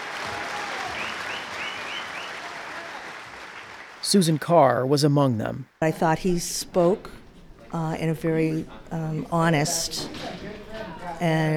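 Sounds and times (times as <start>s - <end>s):
warm applause from a crowd: 0.0s - 4.1s
speech: 4.1s - 11.5s.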